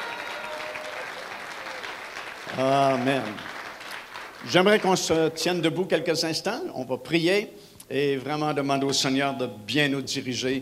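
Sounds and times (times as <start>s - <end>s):
congregation applauding during a church service: 0.0s - 5.2s
speech: 2.5s - 3.5s, 4.4s - 10.6s.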